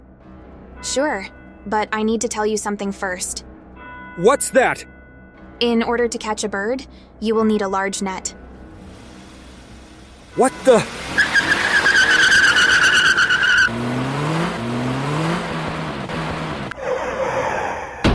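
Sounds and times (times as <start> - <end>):
speech: 0.8 - 3.5, 4.2 - 4.9, 5.6 - 8.4, 10.4 - 11.0
car skidding: 10.3 - 18.0.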